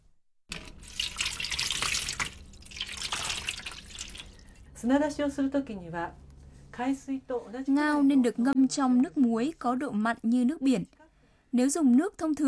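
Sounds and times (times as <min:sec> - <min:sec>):
water poured over clams for soaking: 0:00.5 - 0:04.7
speech: 0:04.8 - 0:06.2, 0:06.8 - 0:12.4.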